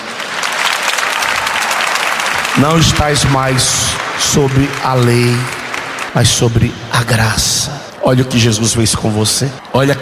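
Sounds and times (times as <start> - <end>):
congregation applause during a church sermon: 0.0 - 7.7
speech: 2.6 - 9.9.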